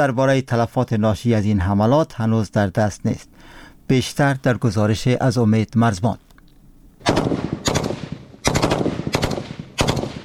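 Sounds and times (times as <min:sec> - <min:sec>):
speech: 0:00.0 - 0:06.3
tank gunfire on a battlefield: 0:07.0 - 0:10.2.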